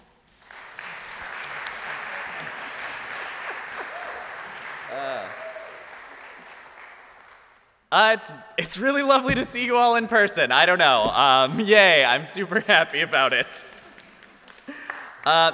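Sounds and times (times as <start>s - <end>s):
congregation at a worship service applauding: 0.0s - 7.8s, 13.6s - 15.3s
congregation voiced cheer: 3.8s - 6.2s
speech: 7.9s - 13.8s, 15.2s - 15.5s.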